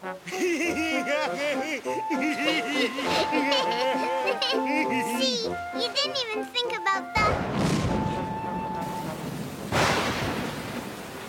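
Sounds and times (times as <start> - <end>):
speech: 0.0 - 3.6
laughter: 0.2 - 6.1
thunder: 7.3 - 11.2.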